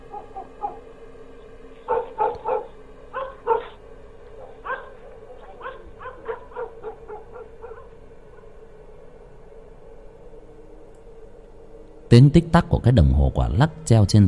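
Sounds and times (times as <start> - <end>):
distant dogs barking at night: 0.0 - 8.8
speech: 12.2 - 14.2.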